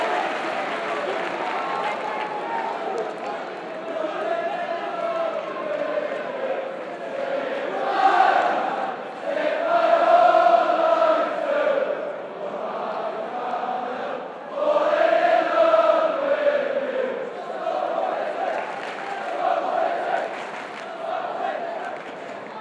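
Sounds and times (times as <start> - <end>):
football supporters chanting: 0.0 - 22.6.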